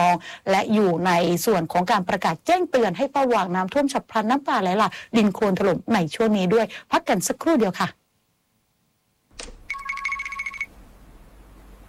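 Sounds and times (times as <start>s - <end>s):
speech: 0.0s - 8.0s
telephone ringing: 9.6s - 10.7s.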